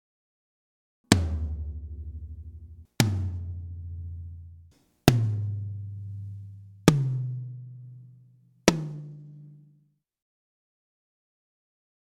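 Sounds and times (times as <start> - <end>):
tom drums: 1.1 - 7.5, 8.7 - 9.2.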